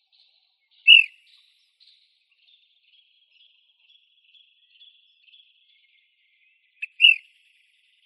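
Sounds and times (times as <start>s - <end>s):
flycatchers calling: 0.9s - 1.1s, 6.8s - 7.2s.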